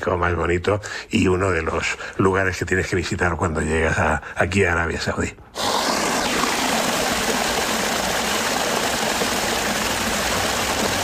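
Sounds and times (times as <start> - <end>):
speech: 0.0 - 5.8
water flowing in an oasis stream in the Al-Ula palm grove: 6.0 - 11.0.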